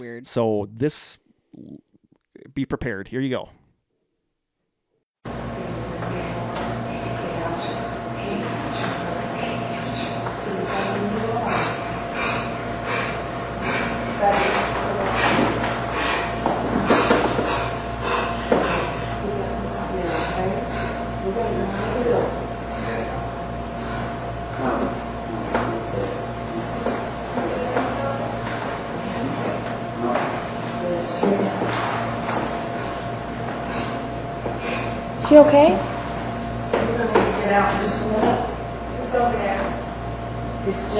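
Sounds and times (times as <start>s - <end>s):
speech: 0.0s - 1.9s, 2.6s - 3.6s, 35.3s - 35.9s, 40.7s - 40.9s
steady hum: 0.0s - 40.9s
investigator breathing strangely during a paranormal investigation: 9.8s - 16.4s, 17.0s - 19.2s, 33.6s - 35.0s.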